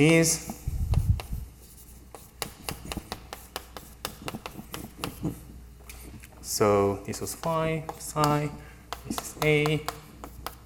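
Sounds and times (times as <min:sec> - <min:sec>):
speech: 0:00.0 - 0:00.6, 0:06.6 - 0:10.0
writing on a board during a lecture: 0:00.9 - 0:05.4, 0:07.2 - 0:10.6.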